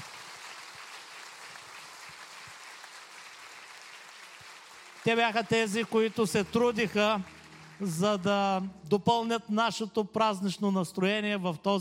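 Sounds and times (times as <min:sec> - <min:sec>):
audience applause for a church choir at an Easter service: 0:00.0 - 0:08.7
speech: 0:05.0 - 0:11.7.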